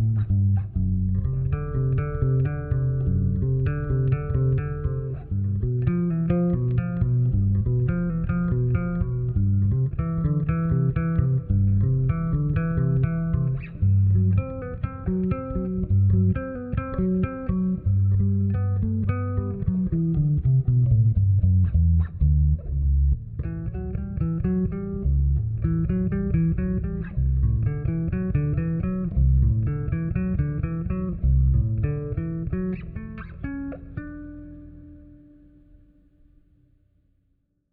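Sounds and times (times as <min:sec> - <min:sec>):
bass guitar: 0:00.0 - 0:36.5.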